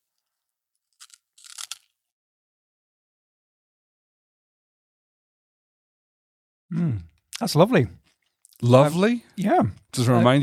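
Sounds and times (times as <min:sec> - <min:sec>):
person eating a crunchy snack from a packet: 0:00.9 - 0:02.0
speech: 0:06.7 - 0:08.0, 0:08.6 - 0:10.4.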